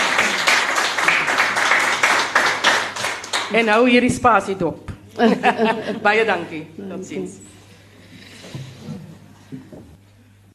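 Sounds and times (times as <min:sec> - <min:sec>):
audience hand clapping: 0:00.0 - 0:03.8
speech: 0:03.5 - 0:07.4
laughter: 0:05.1 - 0:06.5.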